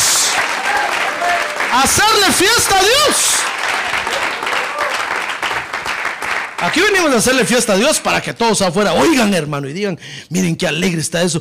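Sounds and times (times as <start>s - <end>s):
audience applauding: 0.0s - 7.6s
speech: 1.7s - 3.6s, 6.6s - 11.3s.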